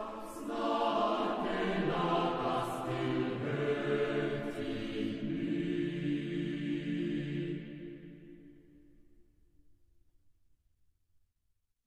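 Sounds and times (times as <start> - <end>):
traditional Norwegian folk song: 0.0 - 8.6.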